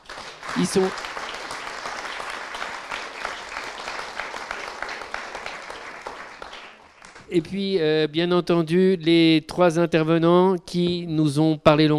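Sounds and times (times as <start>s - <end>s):
audience applause: 0.0s - 7.3s
speech: 0.6s - 1.0s, 7.3s - 11.9s.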